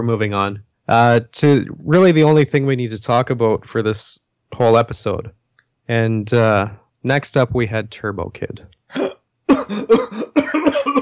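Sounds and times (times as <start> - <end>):
speech: 0.0 - 10.5
person choking after a gasp: 8.9 - 11.0
person gasping: 9.6 - 10.4.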